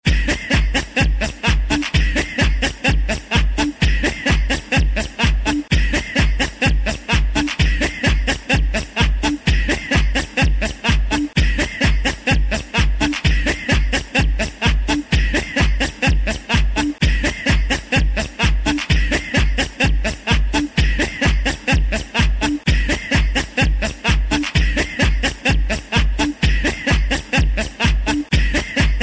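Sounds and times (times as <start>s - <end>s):
person laughing: 0.0s - 29.0s.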